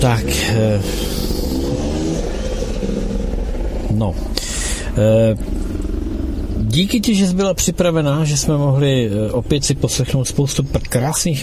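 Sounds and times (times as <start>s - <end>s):
speech: 0.0s - 1.1s, 3.9s - 5.6s, 6.7s - 11.4s
racing vehicles revving past: 0.0s - 6.7s.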